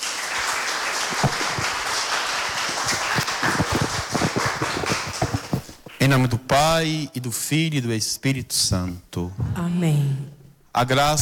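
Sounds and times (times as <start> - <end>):
crowd applauding: 0.0 - 6.0
speech: 6.0 - 11.2.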